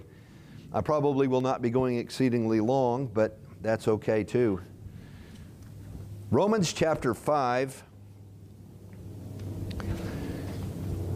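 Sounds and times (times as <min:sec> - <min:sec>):
speech: 0:00.7 - 0:04.7, 0:06.3 - 0:07.9
airplane flying overhead during air show: 0:04.6 - 0:11.1.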